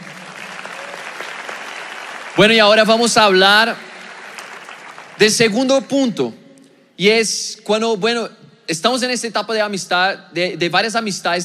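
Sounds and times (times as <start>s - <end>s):
room full of people applauding: 0.0s - 5.6s
speech: 2.4s - 3.9s, 5.2s - 6.4s, 7.0s - 11.4s.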